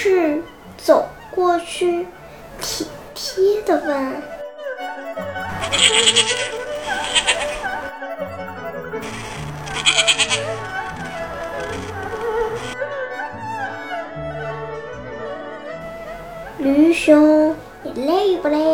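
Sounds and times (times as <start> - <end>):
speech: 0.0 - 4.4, 5.1 - 7.3, 16.6 - 18.7
sheep bleating: 5.5 - 7.9, 9.0 - 12.8.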